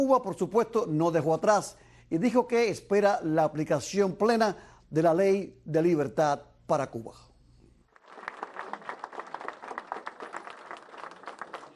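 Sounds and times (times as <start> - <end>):
speech: 0.0 - 7.3
audience clapping and cheering welcoming Senator Scott in West Miami: 7.9 - 11.7.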